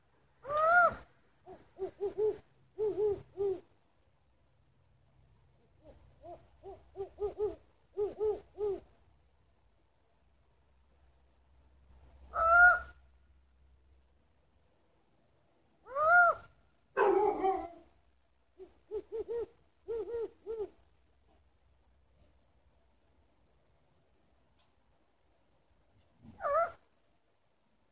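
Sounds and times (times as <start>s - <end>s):
owl hooting: 0.4s - 3.6s, 5.8s - 8.9s, 12.3s - 13.0s, 15.8s - 16.5s, 18.6s - 20.8s, 26.3s - 26.8s.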